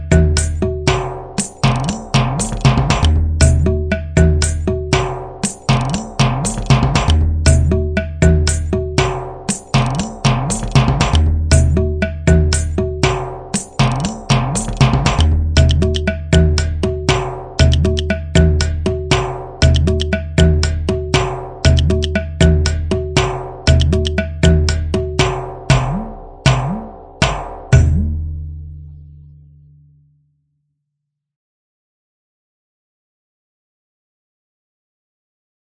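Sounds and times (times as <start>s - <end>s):
southern folk grooves: 0.0s - 28.0s.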